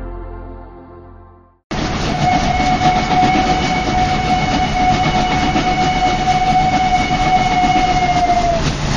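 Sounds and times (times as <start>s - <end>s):
train horn: 1.7s - 8.8s
high whistling tone: 2.0s - 8.8s.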